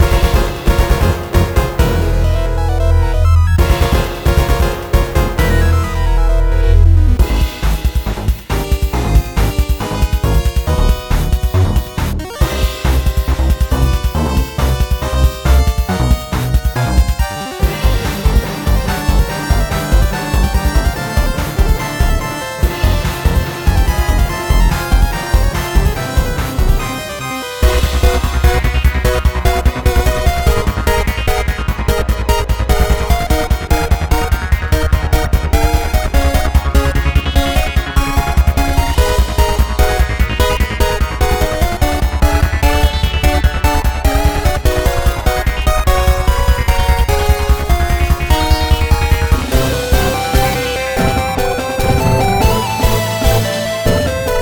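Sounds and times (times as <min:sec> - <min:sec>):
battle music: 0:00.0 - 0:54.4.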